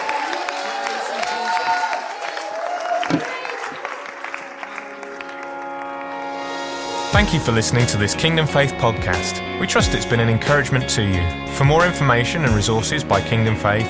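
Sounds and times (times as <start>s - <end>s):
audience shouting praise: 0.0s - 5.6s
audience applauding: 0.0s - 7.0s
speech: 7.2s - 13.8s.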